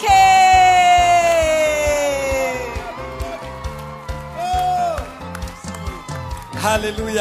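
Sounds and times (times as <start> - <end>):
crowd cheering: 0.0 - 7.1
long high whoop sliding downward: 0.0 - 7.1
scattered claps and shouts: 0.0 - 7.1
steady rhythmic beat: 0.0 - 7.1.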